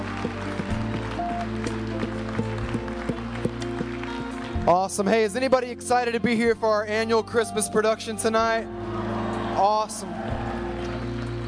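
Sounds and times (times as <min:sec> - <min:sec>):
audience hand clapping: 0:00.0 - 0:05.1, 0:10.3 - 0:11.4
speech: 0:04.7 - 0:09.0, 0:09.6 - 0:10.4.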